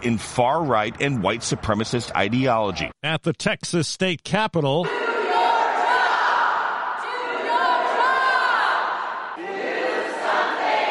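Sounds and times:
speech: 0.0 - 5.1
large crowd of protesters shouting and chanting: 4.8 - 10.8.

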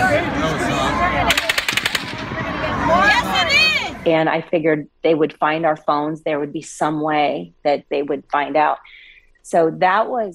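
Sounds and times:
agitated voices and shouting: 0.0 - 4.1
real gunshots recorded on a phone: 1.2 - 3.0
speech: 4.0 - 10.3.

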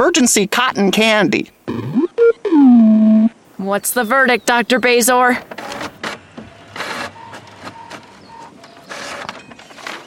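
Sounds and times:
speech: 0.0 - 5.8
paper list grabbed and page turned: 5.5 - 10.0.

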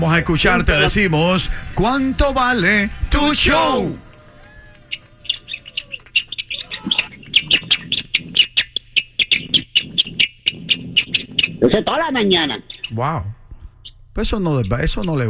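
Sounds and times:
speech: 0.0 - 4.0, 11.6 - 13.4, 14.2 - 15.2
person imitating a baby pigeon call: 5.7 - 14.0.

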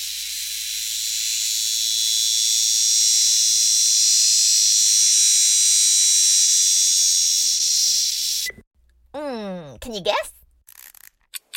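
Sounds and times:
cicada buzzing: 0.0 - 8.5
speech: 9.8 - 10.3.

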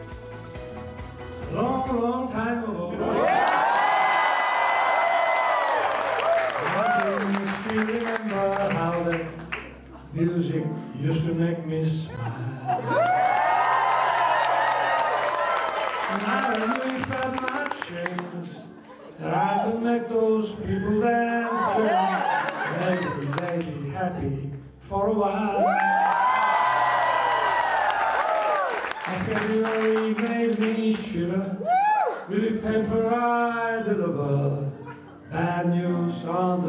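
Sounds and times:
speech: 1.5 - 2.8, 7.8 - 9.4, 10.2 - 13.1, 16.1 - 22.0
warm applause from banquet guests: 3.1 - 9.8, 12.8 - 18.3, 21.7 - 23.7, 25.7 - 31.0
man singing a melodic tune: 6.8 - 9.5, 10.1 - 12.9, 16.1 - 25.8, 29.1 - 31.6, 32.3 - 36.6
chuckles and chatter: 18.6 - 19.3, 21.7 - 23.4.

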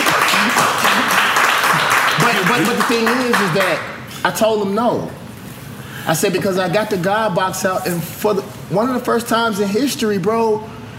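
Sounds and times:
audience clapping: 0.0 - 4.0
speech: 2.6 - 5.2, 6.0 - 10.8.

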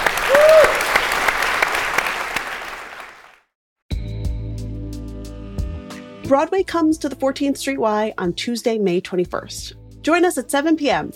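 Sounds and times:
audience applause: 0.0 - 3.4
speech: 6.3 - 11.1.

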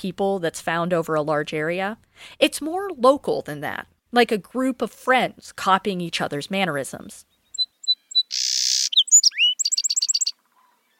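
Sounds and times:
speech: 0.0 - 7.3
song sparrow singing: 7.3 - 10.9.

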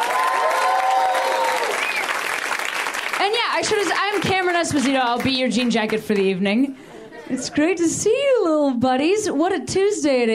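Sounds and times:
audience cheering at a live comedy show: 0.0 - 3.2
audience clapping at a live comedy show: 0.0 - 6.4
speech: 3.2 - 10.3.

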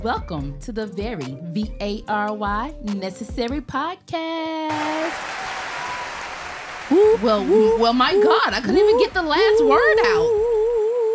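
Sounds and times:
speech: 0.0 - 5.6, 6.9 - 10.5
crowd applause: 4.7 - 9.3.

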